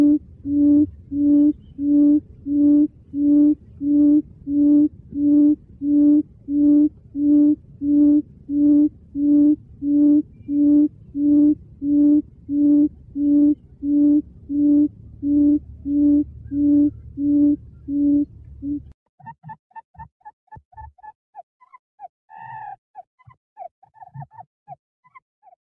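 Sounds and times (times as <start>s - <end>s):
quail hooting: 0.0s - 20.1s, 21.6s - 24.5s.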